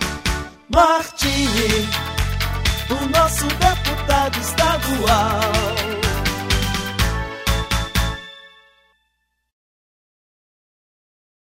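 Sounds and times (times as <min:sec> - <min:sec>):
gospel-style jingle: 0:00.0 - 0:09.0.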